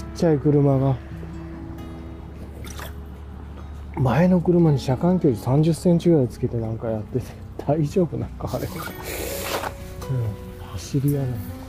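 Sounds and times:
speech: 0.2 - 1.1, 4.0 - 9.2, 10.1 - 11.6
person drinking water: 2.6 - 3.0, 8.7 - 9.8.

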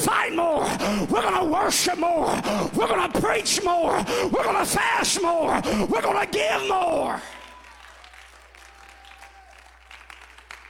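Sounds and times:
speech: 0.3 - 7.4
audience clapping: 7.1 - 10.6.

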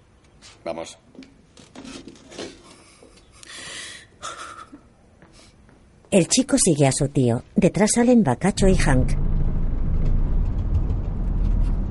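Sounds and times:
speech: 0.4 - 1.9, 6.1 - 9.2
car engine and tire rumble on a desert road in a thriller film: 8.6 - 11.8.

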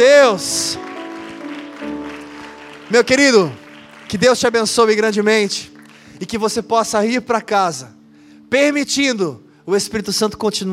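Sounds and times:
speech: 0.0 - 0.9, 2.9 - 10.7
sustained keyboard chords: 0.0 - 7.9
audience applauding: 0.3 - 6.2.

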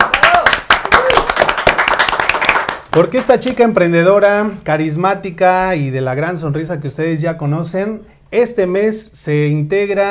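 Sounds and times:
audience applause: 0.0 - 3.1
speech: 3.0 - 10.1.

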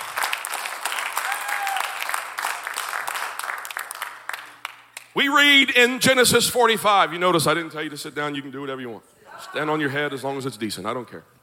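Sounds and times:
audience applause: 0.0 - 5.1
speech: 5.2 - 11.4.

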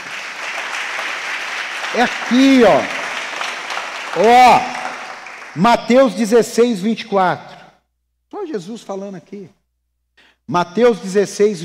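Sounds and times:
audience applause: 0.0 - 5.6
speech: 1.9 - 3.0, 4.2 - 4.8, 5.6 - 7.5, 8.5 - 9.6, 10.2 - 11.6.

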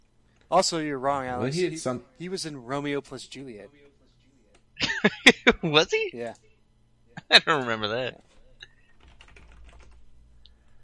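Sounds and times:
speech: 0.5 - 3.8, 5.0 - 6.5, 7.2 - 8.3
computer keyboard typing: 8.3 - 10.0.

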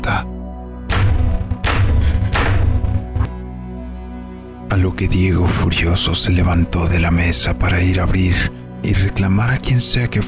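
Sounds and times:
speech: 0.1 - 0.4, 4.7 - 10.2
heavy booming knocks on a door: 0.9 - 3.3
soft thud: 0.9 - 3.3.

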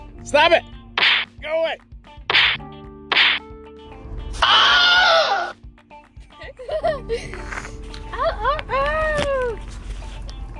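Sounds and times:
speech: 0.2 - 0.8, 1.4 - 1.9, 4.4 - 4.8
person getting punched: 1.0 - 1.3, 2.3 - 3.4
laughter: 6.3 - 9.0.

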